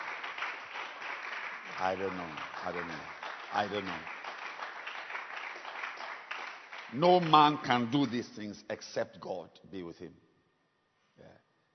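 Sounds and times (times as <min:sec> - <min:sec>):
audience clapping hands: 0:00.0 - 0:08.4
speech: 0:01.8 - 0:04.2, 0:06.9 - 0:10.2.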